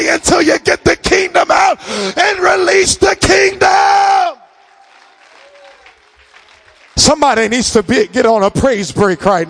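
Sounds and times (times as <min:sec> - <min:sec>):
speech: 0:00.1 - 0:01.3, 0:02.8 - 0:04.2, 0:07.1 - 0:09.4
audience clapping: 0:04.5 - 0:08.3.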